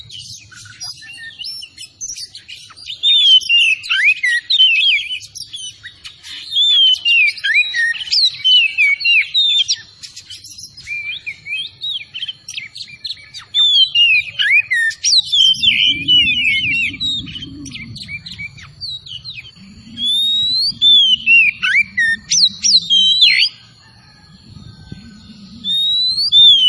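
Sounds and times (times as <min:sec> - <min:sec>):
Oriental magpie-robin song: 0:00.0 - 0:26.6
low rumbling noise: 0:15.1 - 0:26.6.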